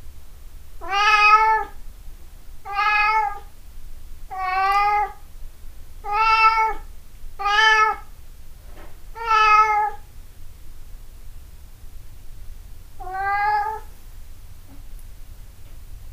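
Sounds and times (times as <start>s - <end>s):
quiet background hiss: 0.0s - 16.1s
cat meowing: 0.8s - 1.8s, 2.7s - 3.5s, 4.3s - 5.2s, 6.0s - 6.8s, 7.4s - 8.1s, 9.2s - 10.0s, 13.0s - 13.9s.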